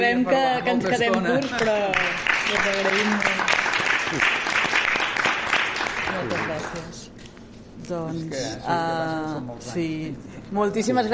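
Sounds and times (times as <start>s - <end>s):
speech: 0.0s - 4.4s, 7.9s - 11.1s
audience applause: 1.6s - 6.8s.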